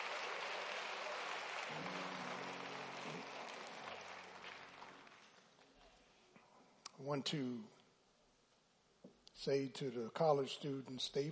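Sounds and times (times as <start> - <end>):
audience applauding the choir: 0.0 - 5.9
speech: 7.0 - 7.8, 9.4 - 11.3.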